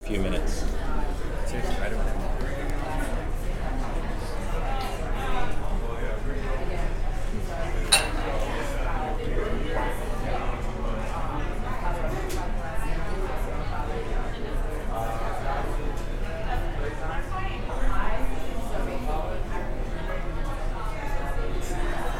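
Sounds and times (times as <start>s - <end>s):
cafe interior walla of many voices: 0.0s - 22.1s.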